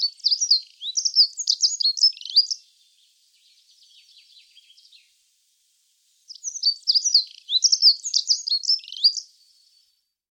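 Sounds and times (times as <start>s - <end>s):
bird singing high rapid twittering phrases: 0.0s - 2.6s, 6.3s - 9.3s.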